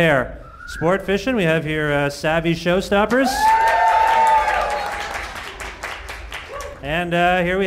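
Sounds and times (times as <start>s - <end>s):
speech: 0.0s - 3.6s, 6.8s - 7.6s
audience cheering and applauding: 3.1s - 6.9s.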